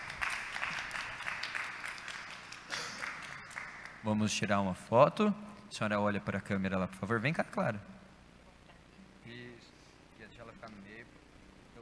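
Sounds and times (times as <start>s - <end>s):
people clapping: 0.0s - 4.2s
speech: 4.0s - 8.0s.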